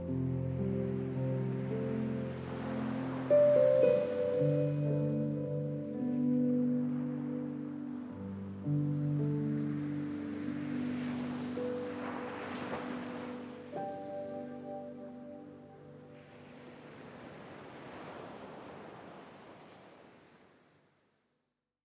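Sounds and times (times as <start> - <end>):
restful piano: 0.0 - 17.0
waves: 0.0 - 21.2.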